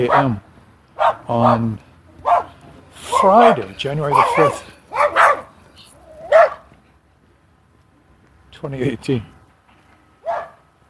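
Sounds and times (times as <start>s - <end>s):
speech: 0.0s - 0.5s, 1.3s - 1.9s, 3.2s - 4.8s, 8.6s - 9.4s
small yappy dogs on a leash barking: 2.2s - 6.7s, 10.2s - 10.6s.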